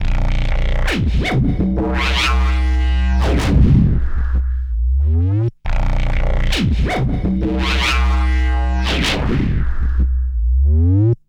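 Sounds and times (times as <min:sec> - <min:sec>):
drum and bass music with heavy bass: 0:00.0 - 0:04.4, 0:05.0 - 0:11.2.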